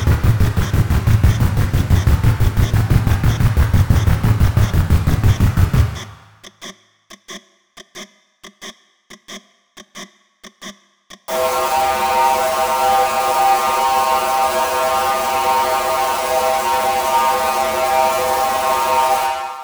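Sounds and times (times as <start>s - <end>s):
white noise: 0.0s - 6.2s, 11.3s - 19.6s.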